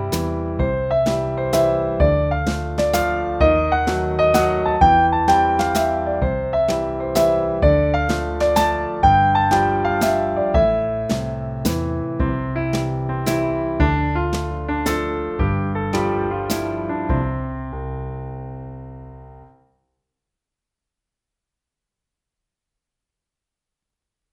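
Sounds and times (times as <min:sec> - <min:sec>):
jazzy waltz music: 0:00.0 - 0:19.4.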